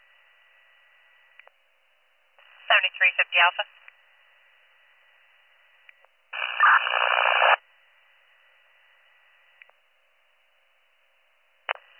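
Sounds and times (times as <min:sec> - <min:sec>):
radio transmission static: 0:02.4 - 0:03.8, 0:06.4 - 0:07.6
speech: 0:02.7 - 0:03.8.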